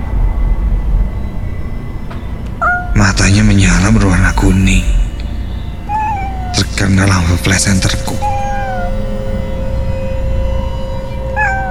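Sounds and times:
droning hum: 0.0s - 11.7s
low rumble: 0.0s - 11.7s
cat meowing: 2.6s - 3.0s, 4.2s - 9.1s, 11.4s - 11.7s
speech: 3.6s - 5.0s, 6.8s - 8.4s.

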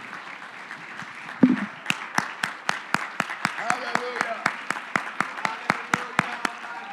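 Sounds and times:
crowd clapping hands in unison rhythm: 0.0s - 6.9s.

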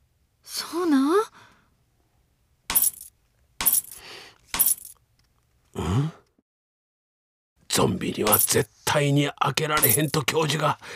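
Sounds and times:
speech: 0.7s - 1.0s, 7.8s - 10.9s
keychain jangling: 2.7s - 4.0s, 4.6s - 5.0s.

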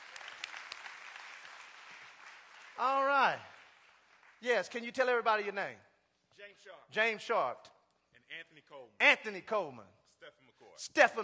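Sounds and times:
audience clapping: 0.0s - 5.6s
speech: 2.8s - 3.5s, 4.4s - 11.2s.

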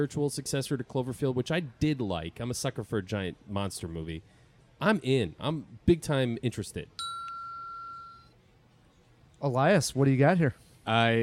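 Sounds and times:
speech: 0.0s - 7.1s, 9.4s - 11.2s
bell ding: 7.0s - 8.3s.

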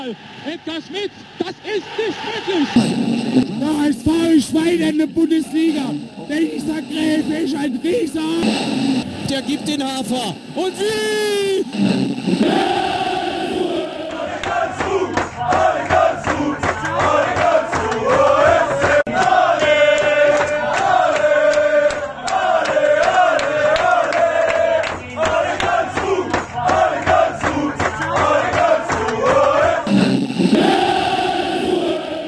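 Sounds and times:
speech: 0.0s - 12.8s
stadium crowd cheering at final whistle: 0.0s - 32.2s
rhythmic claps: 2.8s - 32.2s.

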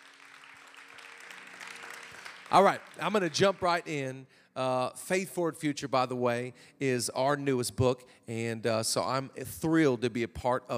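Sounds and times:
audience clapping: 0.0s - 4.0s
speech: 2.5s - 10.7s.

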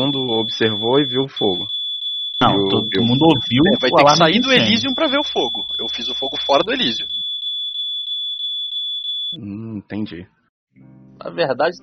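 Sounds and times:
speech: 0.0s - 1.8s, 2.4s - 7.2s, 9.3s - 11.8s
alarm ringing: 0.0s - 9.4s.

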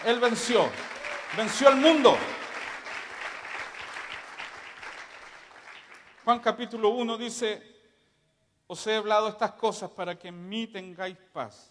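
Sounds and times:
speech: 0.0s - 2.4s, 6.3s - 7.7s, 8.7s - 11.6s
audience applause: 0.0s - 6.2s.

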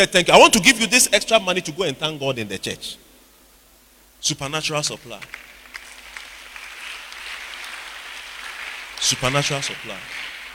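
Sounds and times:
speech: 0.0s - 3.1s, 4.2s - 5.5s, 9.0s - 10.3s
audience clapping: 5.2s - 10.5s.

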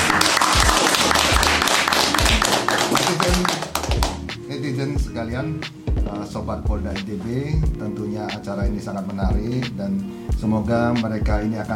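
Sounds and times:
audience applause: 0.0s - 4.2s
speech: 5.2s - 11.7s.

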